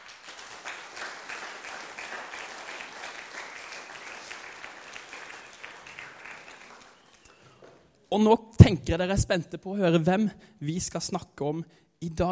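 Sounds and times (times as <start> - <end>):
audience applause: 0.0 - 7.8
speech: 8.1 - 12.3.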